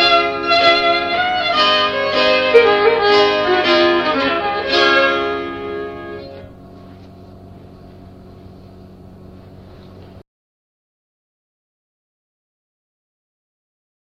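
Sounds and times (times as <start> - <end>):
polska dance tune: 0.0 - 6.4.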